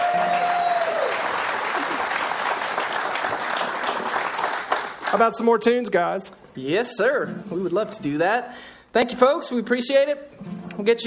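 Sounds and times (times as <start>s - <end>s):
audience applause: 0.0s - 5.4s
speech: 5.1s - 11.0s.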